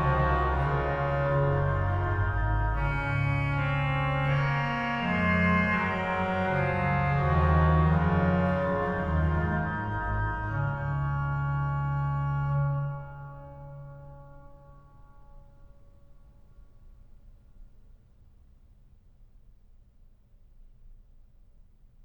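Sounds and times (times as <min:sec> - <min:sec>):
organ: 0:00.0 - 0:13.1.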